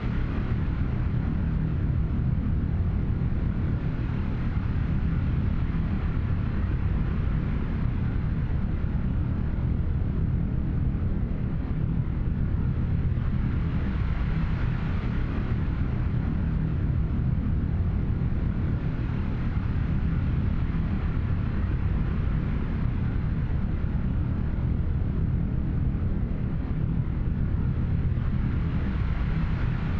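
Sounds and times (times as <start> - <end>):
colony ship idling: 0.0 - 29.9.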